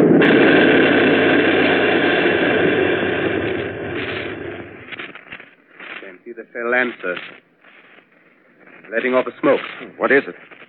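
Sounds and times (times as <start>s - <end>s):
artillery gun firing as a radio drama sound effect: 0.0s - 5.5s
speech: 6.9s - 7.4s, 8.9s - 10.6s.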